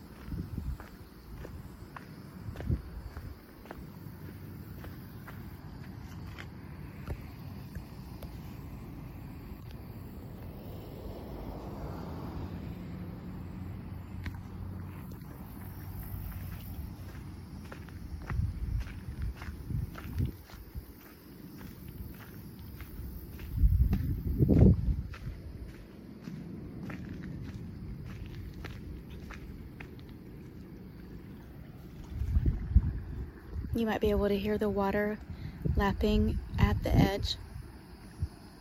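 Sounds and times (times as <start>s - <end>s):
footsteps on crunchy oyster shell path: 0.0s - 8.5s, 14.2s - 31.1s
low rumbling outdoor background: 0.0s - 38.5s
speech: 33.8s - 37.4s.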